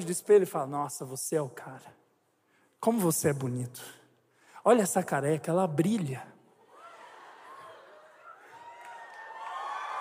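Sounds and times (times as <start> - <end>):
speech: 0.0 - 2.0, 2.8 - 4.0, 4.6 - 6.3
cheers and whoops: 6.6 - 9.9
crowd applauding: 6.7 - 9.9.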